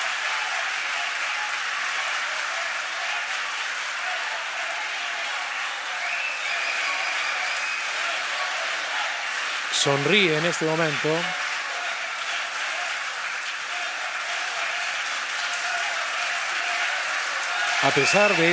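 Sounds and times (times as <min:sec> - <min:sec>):
audience applause in a parliament chamber: 0:00.0 - 0:18.5
speech: 0:09.8 - 0:11.5, 0:17.8 - 0:18.5.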